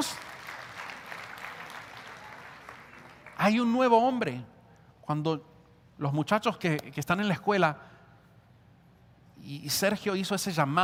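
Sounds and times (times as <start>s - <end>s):
congregation applauding God during a Spanish-language church service: 0.0s - 4.3s
speech: 3.4s - 4.5s, 5.1s - 7.9s, 9.4s - 10.8s.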